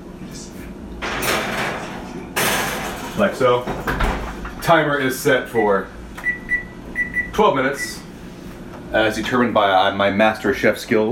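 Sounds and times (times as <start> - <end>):
oven door opening to put rolls in: 1.0 - 4.9
speech: 3.2 - 4.0, 4.7 - 6.0, 7.4 - 8.0, 8.9 - 11.1.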